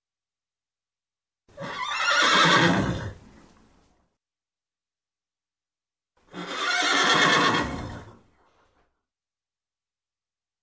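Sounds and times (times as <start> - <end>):
horse neighing: 1.6 - 3.2, 6.3 - 8.2.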